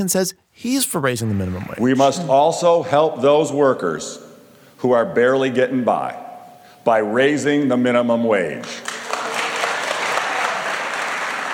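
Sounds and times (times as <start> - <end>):
speech: 0.0 - 6.2, 6.8 - 8.9
applause in the House chamber: 8.8 - 11.5.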